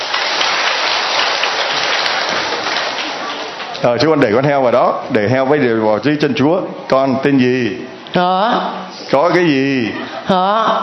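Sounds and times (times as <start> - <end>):
crowd applauding: 0.0 - 3.9
speech: 3.8 - 10.8.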